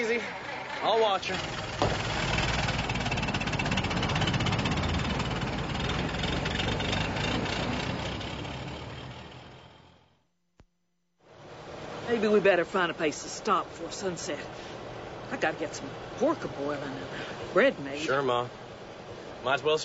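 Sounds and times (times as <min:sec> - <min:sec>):
overloaded old truck engine rumbling and knocking: 0:00.0 - 0:10.2
speech: 0:00.2 - 0:02.1, 0:12.1 - 0:18.6, 0:19.4 - 0:19.8.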